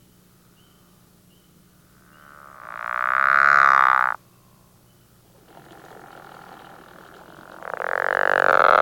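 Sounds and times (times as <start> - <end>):
pickerel frog calling with low rasping snores: 2.0 - 4.2, 5.3 - 8.7.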